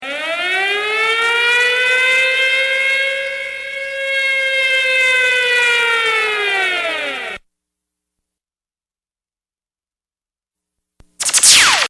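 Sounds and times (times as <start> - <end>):
siren: 0.0 - 7.5, 11.2 - 11.8.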